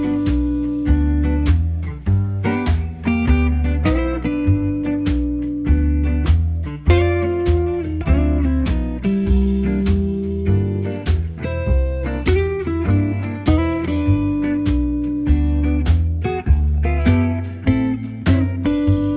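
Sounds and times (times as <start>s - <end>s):
telephone hold music: 0.0s - 19.1s.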